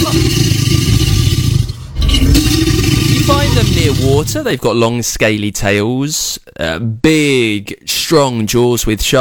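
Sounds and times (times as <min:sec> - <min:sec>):
alligator roar: 0:00.0 - 0:04.4
speech: 0:04.0 - 0:09.1.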